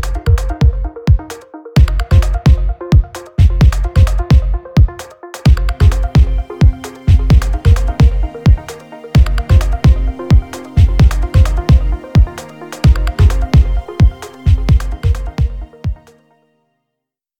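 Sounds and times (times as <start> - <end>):
programmed drum beat: 0.0 - 16.1.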